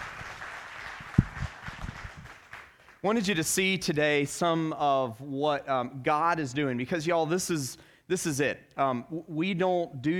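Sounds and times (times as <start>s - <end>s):
audience applause: 0.0s - 3.0s
speech: 3.0s - 10.1s.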